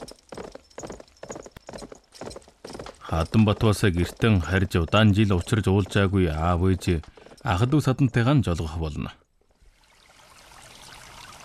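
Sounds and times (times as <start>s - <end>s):
horse hooves clip-clopping as riders set off toward a palace: 0.0s - 8.2s
speech: 3.1s - 9.2s.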